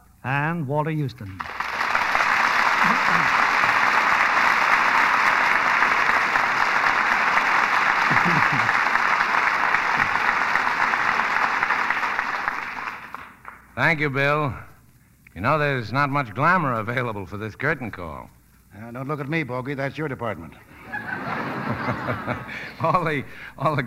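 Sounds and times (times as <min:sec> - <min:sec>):
speech: 0:00.2 - 0:01.6, 0:02.8 - 0:03.4, 0:13.9 - 0:14.7, 0:15.4 - 0:20.7, 0:21.7 - 0:23.8
studio audience applause for the stars: 0:01.4 - 0:13.7
laughter: 0:02.6 - 0:04.2, 0:07.5 - 0:10.4, 0:20.7 - 0:23.8.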